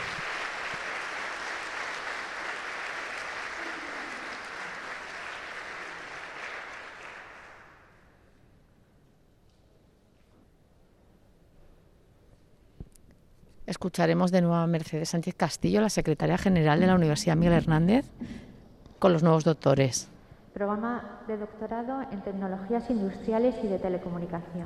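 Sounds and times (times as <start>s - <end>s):
audience applause: 0.0s - 7.9s
speech: 13.8s - 18.4s, 19.0s - 24.6s.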